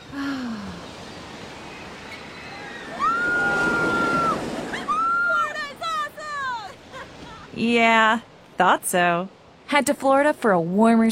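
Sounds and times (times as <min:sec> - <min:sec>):
ocean waves on a Florida shore: 0:00.0 - 0:11.0
speech: 0:07.6 - 0:11.1.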